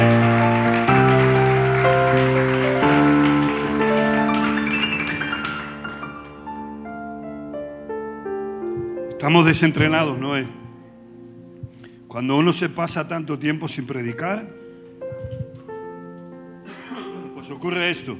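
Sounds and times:
audience applauding: 0.0s - 6.7s
speech: 9.3s - 10.6s, 12.2s - 14.6s, 17.6s - 18.1s.

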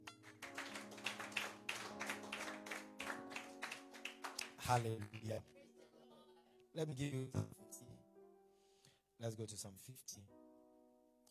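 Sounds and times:
audience clapping: 0.0s - 5.5s
speech: 4.7s - 5.6s, 6.8s - 7.6s, 9.2s - 10.4s.

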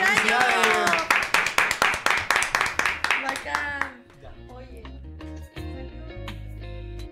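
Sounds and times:
audience clapping: 0.0s - 4.1s.

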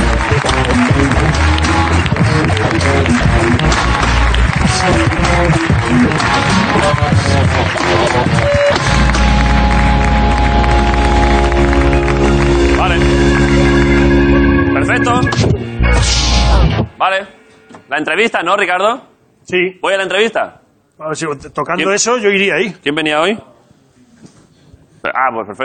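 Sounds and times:
audience applause: 0.0s - 14.7s
music: 0.0s - 18.8s
speech: 18.0s - 23.5s, 25.0s - 25.6s.

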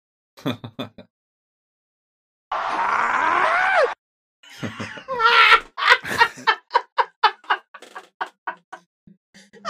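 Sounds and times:
recorded scream played in reverse: 2.5s - 4.0s
laughter: 4.5s - 8.8s.

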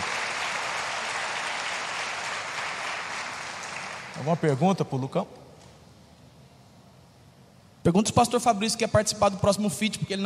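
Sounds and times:
crowd applauding: 0.0s - 4.8s
speech: 4.2s - 5.4s, 7.8s - 10.2s.

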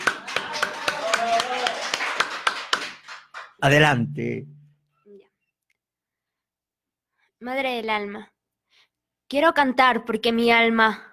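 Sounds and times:
audience clapping for a poet: 0.0s - 3.8s
speech: 3.6s - 4.6s, 7.4s - 8.4s, 9.3s - 11.1s.

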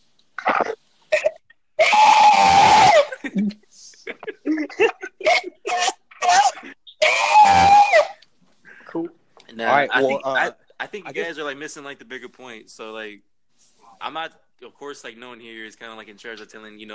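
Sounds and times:
voice imitating an old woman's scream: 1.8s - 3.2s, 5.3s - 8.2s
speech: 9.7s - 13.3s, 14.0s - 16.9s.

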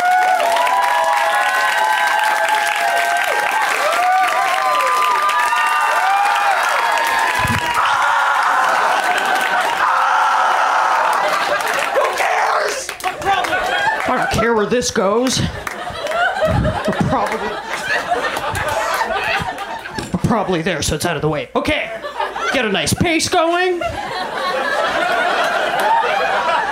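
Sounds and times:
audience applause: 0.0s - 14.5s, 15.6s - 20.0s, 24.2s - 26.6s
cheering: 0.0s - 14.6s, 15.6s - 20.0s, 24.0s - 26.6s
laughter: 7.1s - 20.6s, 21.7s - 26.6s
speech: 14.6s - 15.7s, 20.3s - 24.4s.

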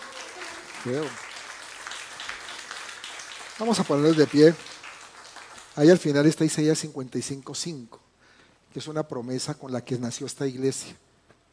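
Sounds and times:
audience applauding: 0.0s - 6.6s
speech: 0.8s - 1.3s, 3.6s - 4.7s, 5.8s - 8.0s, 8.7s - 11.1s.

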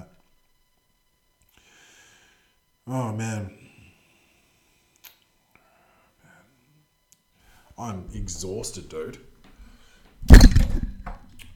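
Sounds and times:
speech: 2.9s - 3.6s, 7.8s - 9.3s
microphone boom arm falling from a table: 10.2s - 11.3s.

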